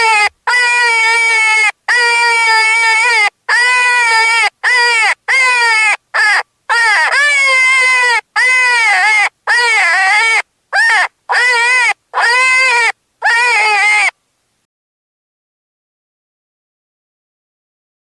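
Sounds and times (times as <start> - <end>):
cottontail rabbit distress cries: 0.0 - 14.2.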